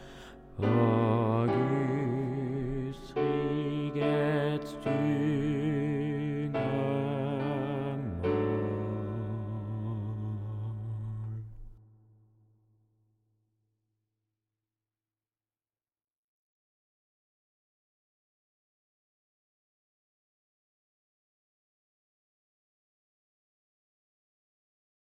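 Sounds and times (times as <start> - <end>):
altos singing: 0.0 - 11.7.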